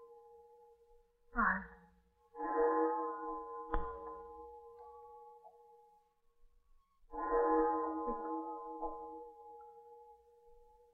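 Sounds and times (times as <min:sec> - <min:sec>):
clock tower bell chiming the hour: 0:02.3 - 0:06.1, 0:07.1 - 0:10.9.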